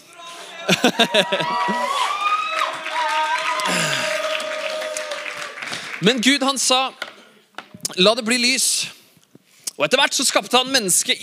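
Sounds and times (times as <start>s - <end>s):
laughter: 0.4s - 2.2s
audience clapping: 0.6s - 7.3s
speech: 0.8s - 2.1s, 6.0s - 7.0s, 8.0s - 9.0s, 9.8s - 11.2s.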